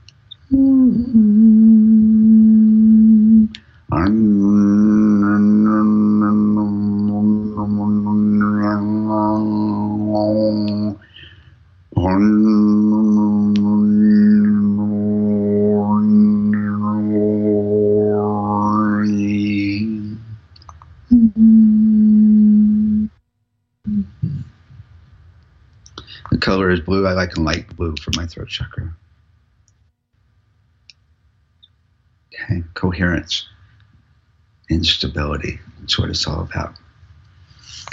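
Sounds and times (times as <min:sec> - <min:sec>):
person humming a low throat chakra note aloud: 0:00.3 - 0:11.3, 0:12.0 - 0:20.4, 0:21.1 - 0:23.2, 0:23.8 - 0:24.5
speech: 0:00.5 - 0:01.5, 0:04.0 - 0:04.4, 0:27.4 - 0:29.0, 0:32.9 - 0:33.5, 0:34.7 - 0:36.8.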